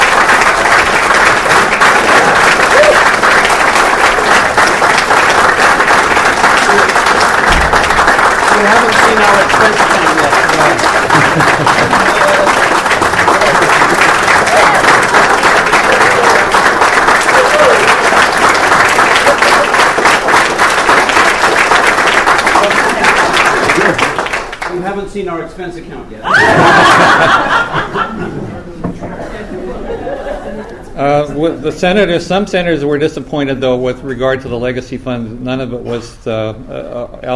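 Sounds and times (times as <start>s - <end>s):
audience applause: 0.0s - 24.8s, 26.3s - 28.0s
laughter: 8.9s - 16.5s, 19.0s - 20.0s, 22.6s - 24.2s, 26.2s - 30.9s
speech: 10.6s - 11.7s, 25.2s - 27.5s, 31.0s - 37.3s.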